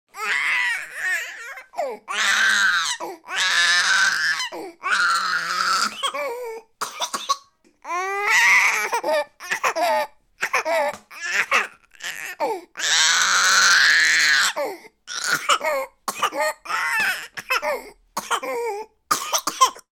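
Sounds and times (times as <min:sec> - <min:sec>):
nine-month-old human baby frustrated crying: 0:00.1 - 0:06.7, 0:07.8 - 0:18.9
nine-month-old human baby coughing: 0:05.4 - 0:12.6, 0:14.4 - 0:19.9.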